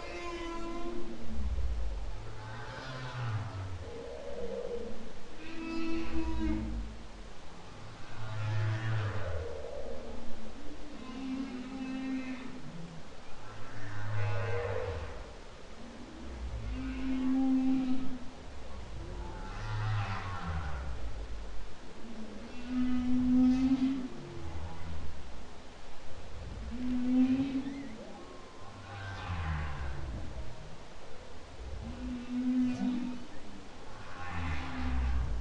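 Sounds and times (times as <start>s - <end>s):
humpback whale song: 0.0s - 25.2s, 26.3s - 30.8s, 31.6s - 35.3s.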